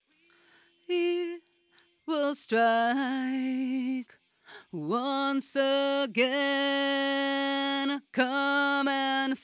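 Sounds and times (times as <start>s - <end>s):
vocals: 0.0s - 9.4s.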